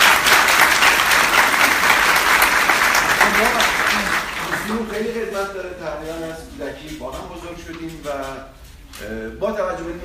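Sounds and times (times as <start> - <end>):
audience applause honoring a top leader at a gathering: 0.0 - 5.1
speech: 5.0 - 10.0.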